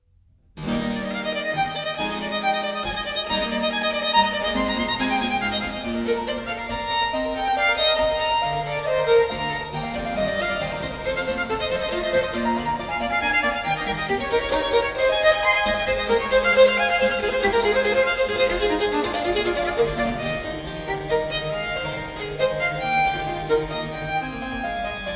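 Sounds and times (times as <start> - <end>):
harpsichord in a sonata allegro: 0.6 - 25.1
violin in a sonata allegro: 0.6 - 25.1.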